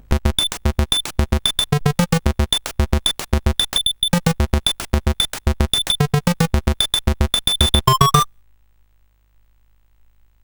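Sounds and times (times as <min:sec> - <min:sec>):
SID chiptune music on a CSG8580R5 chip: 0:00.0 - 0:08.3.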